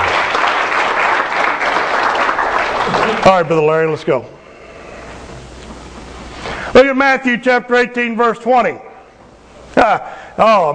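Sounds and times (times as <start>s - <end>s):
church congregation applauding: 0.0s - 4.0s
speech: 3.2s - 4.4s, 6.8s - 8.9s, 9.8s - 10.7s.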